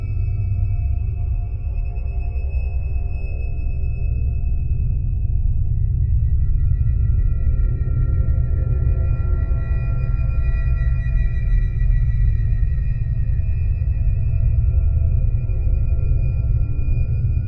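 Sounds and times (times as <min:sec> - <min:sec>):
ambience: 0:00.0 - 0:17.4.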